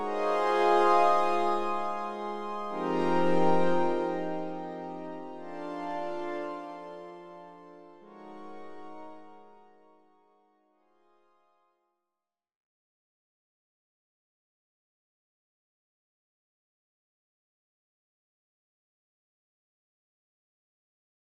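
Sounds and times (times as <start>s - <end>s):
synth pad without effects: 0.0s - 8.7s.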